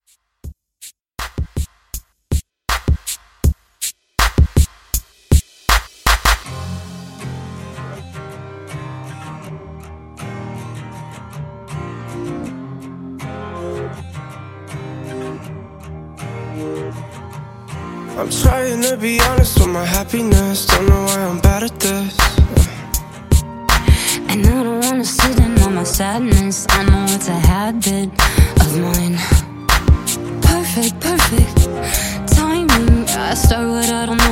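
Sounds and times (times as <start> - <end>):
pop drum loop: 1.2 - 7.4, 18.3 - 34.3.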